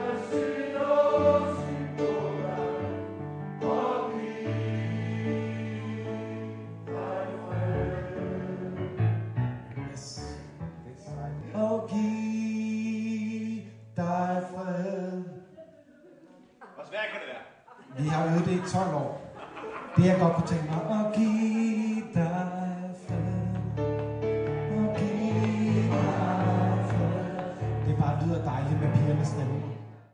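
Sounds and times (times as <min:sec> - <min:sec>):
tenor singing: 0:00.0 - 0:09.1, 0:11.3 - 0:15.9, 0:19.9 - 0:30.0
laughter: 0:17.7 - 0:22.6.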